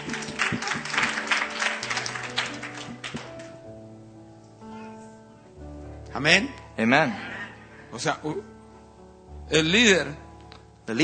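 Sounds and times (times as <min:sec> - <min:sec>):
audience applause: 0:00.0 - 0:03.5
speech: 0:06.2 - 0:07.3, 0:07.9 - 0:08.6, 0:09.5 - 0:10.2.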